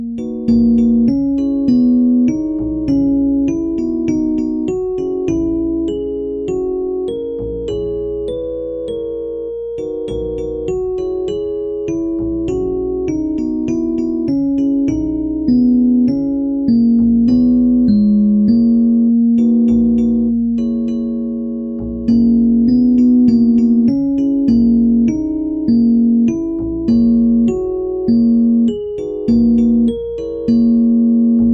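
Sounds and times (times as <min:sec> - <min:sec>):
music in locrian mode: 0:00.0 - 0:31.5.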